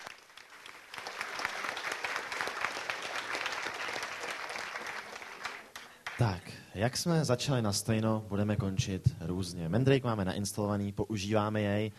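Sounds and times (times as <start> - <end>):
audience applause: 0.0 - 6.4
speech: 6.2 - 11.9.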